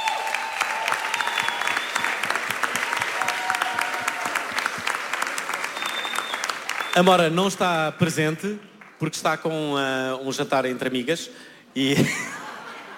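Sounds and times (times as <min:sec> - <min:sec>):
faint whistles and cheers: 0:00.0 - 0:04.8, 0:05.5 - 0:07.3
audience applause: 0:00.0 - 0:07.8
speech: 0:07.0 - 0:12.4
laughter: 0:11.8 - 0:12.9.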